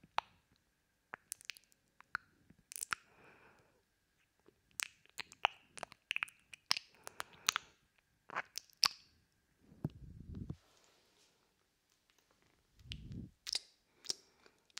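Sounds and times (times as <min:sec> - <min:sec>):
wet mouth clicks, smacks and tongue pops: 0:04.7 - 0:09.1, 0:09.8 - 0:10.6, 0:12.8 - 0:14.7.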